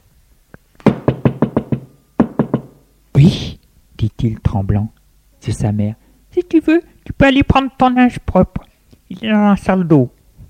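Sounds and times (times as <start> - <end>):
knocking on a door: 0.8 - 2.8
speech: 4.2 - 10.2.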